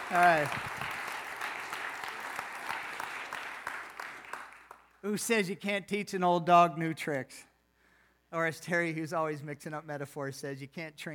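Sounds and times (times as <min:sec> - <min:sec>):
audience applauding: 0:00.0 - 0:04.9
speech: 0:00.1 - 0:00.8, 0:05.0 - 0:07.5, 0:08.3 - 0:11.1.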